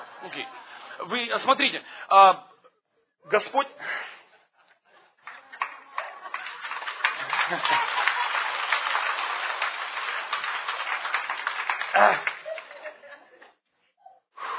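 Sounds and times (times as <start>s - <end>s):
speech: 0.2s - 2.5s, 3.2s - 4.2s, 7.5s - 8.0s, 12.0s - 12.3s
laughter: 4.3s - 8.8s, 12.0s - 13.6s
audience clapping: 5.1s - 13.2s.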